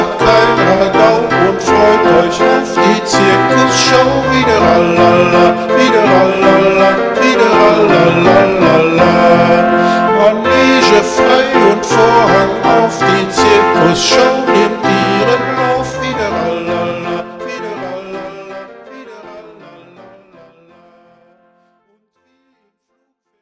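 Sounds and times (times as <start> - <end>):
circus songs: 0.0 - 18.5.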